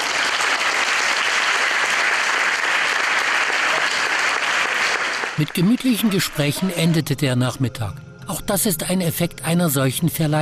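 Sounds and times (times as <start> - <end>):
applause: 0.0 - 6.6
speech: 5.4 - 10.4.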